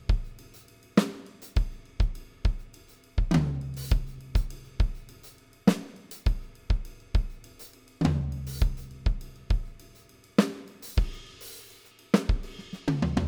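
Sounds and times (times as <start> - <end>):
funk groove on beech drum kit: 0.0 - 13.2.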